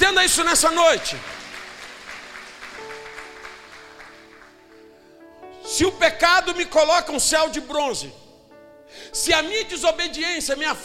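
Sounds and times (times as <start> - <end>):
speech: 0.0 - 1.4, 5.8 - 8.2, 8.9 - 10.8
audience applauding: 0.4 - 5.0.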